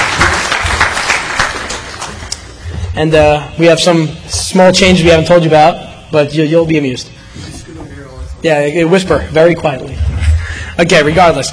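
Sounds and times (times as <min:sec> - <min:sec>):
audience applause welcoming a latecomer at a talk: 0:00.0 - 0:02.6
speech: 0:03.0 - 0:07.2, 0:08.4 - 0:10.1, 0:10.8 - 0:11.5.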